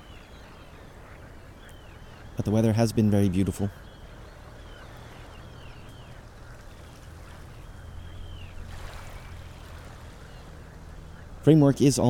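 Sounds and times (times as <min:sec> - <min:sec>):
breeze in birch trees: 0:00.0 - 0:12.0
speech: 0:02.4 - 0:03.8, 0:11.4 - 0:12.0.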